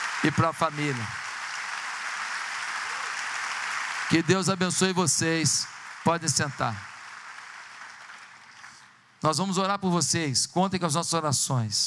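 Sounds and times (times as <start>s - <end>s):
church audience applauding: 0.0s - 8.9s
speech: 0.2s - 1.2s, 4.1s - 6.9s, 9.2s - 11.8s.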